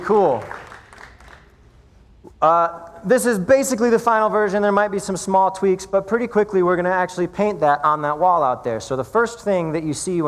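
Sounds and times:
speech: 0:00.0 - 0:00.6, 0:02.4 - 0:10.2
audience applause: 0:00.0 - 0:01.5.

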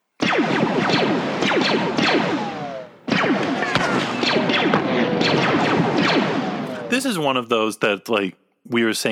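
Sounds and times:
Star Wars blaster hits and ricochets: 0:00.2 - 0:07.0
speech: 0:00.4 - 0:01.7, 0:07.0 - 0:09.1.

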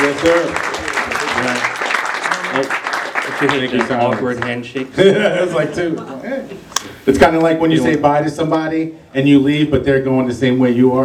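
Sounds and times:
voices calling out and cheering: 0:00.0 - 0:04.1
round of applause: 0:00.0 - 0:04.8
speech: 0:00.1 - 0:00.7, 0:01.4 - 0:01.8, 0:02.5 - 0:11.0
laughter: 0:03.4 - 0:06.8.

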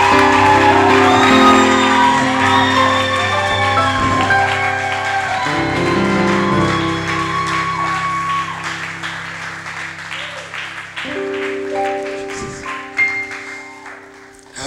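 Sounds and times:
audience cheering and shouting: 0:00.0 - 0:13.7.

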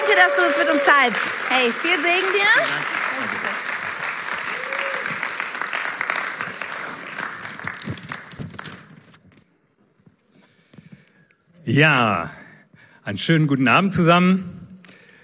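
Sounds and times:
audience applause: 0:00.0 - 0:08.9
speech: 0:00.1 - 0:03.7, 0:11.7 - 0:12.4, 0:13.0 - 0:14.6.

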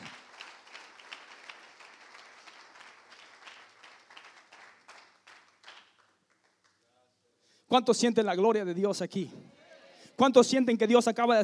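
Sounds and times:
audience applause: 0:00.0 - 0:06.7
speech: 0:07.7 - 0:09.5, 0:10.2 - 0:11.4.

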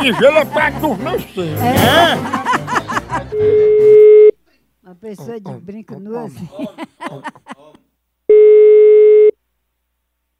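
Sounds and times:
speech: 0:00.0 - 0:02.4, 0:03.3 - 0:03.7, 0:04.9 - 0:07.5
laughter: 0:00.0 - 0:04.0, 0:05.2 - 0:07.9
telephone busy signal after dropped call: 0:03.4 - 0:04.3, 0:08.3 - 0:09.4.

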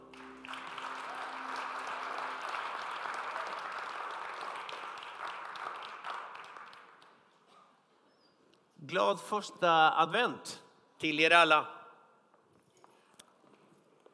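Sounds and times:
audience applause: 0:00.0 - 0:07.3
speech: 0:08.9 - 0:11.8.

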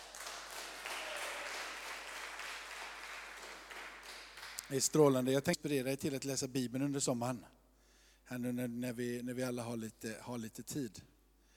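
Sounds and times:
audience applause: 0:00.0 - 0:04.9
speech: 0:04.7 - 0:07.6, 0:08.3 - 0:11.1.

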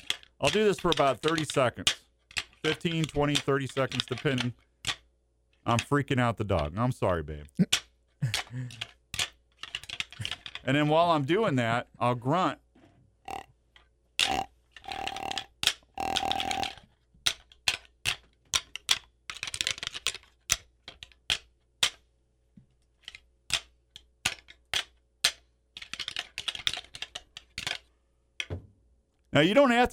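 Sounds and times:
deer antlers rattling together: 0:00.0 - 0:06.0, 0:07.6 - 0:10.9, 0:13.3 - 0:22.0, 0:23.0 - 0:27.9
speech: 0:00.4 - 0:02.0, 0:02.6 - 0:04.6, 0:05.6 - 0:07.8, 0:08.5 - 0:08.9, 0:10.2 - 0:12.6, 0:29.4 - 0:29.9.

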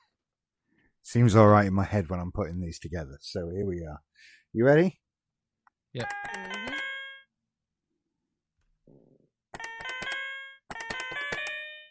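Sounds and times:
speech: 0:01.0 - 0:05.0, 0:05.9 - 0:06.5
electronic quiz buzzer chime: 0:06.0 - 0:07.3, 0:09.6 - 0:11.9.

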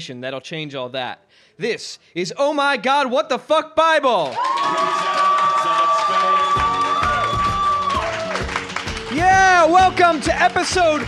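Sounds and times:
speech: 0:00.0 - 0:05.3, 0:09.2 - 0:11.0
live audience cheering and whooping at Beauty Bar in New York City: 0:04.3 - 0:09.8.

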